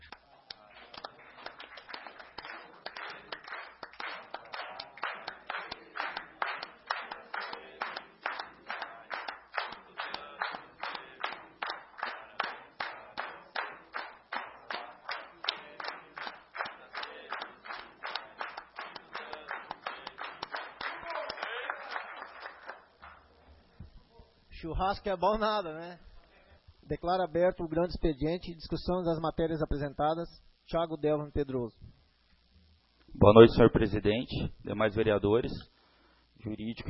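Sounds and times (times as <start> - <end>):
rhythmic hand clapping: 0.0 - 23.4
group singing a birthday song in Portuguese: 4.3 - 20.4
speech: 24.6 - 26.1, 26.9 - 31.8, 33.2 - 35.7, 36.4 - 36.8.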